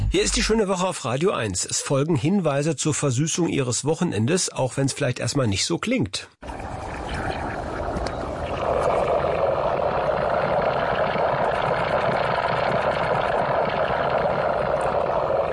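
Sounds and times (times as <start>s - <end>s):
speech: 0.1s - 6.6s
recording from inside a compost heap: 6.4s - 15.5s.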